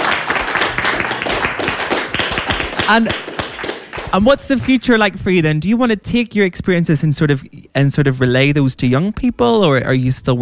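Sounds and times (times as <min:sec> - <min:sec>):
round of applause: 0:00.0 - 0:04.8
speech: 0:02.9 - 0:03.3, 0:04.1 - 0:10.4.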